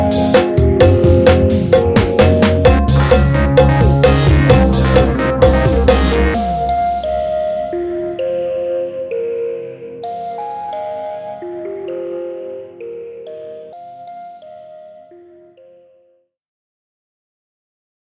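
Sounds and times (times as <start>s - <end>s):
music loop: 0.0s - 8.7s.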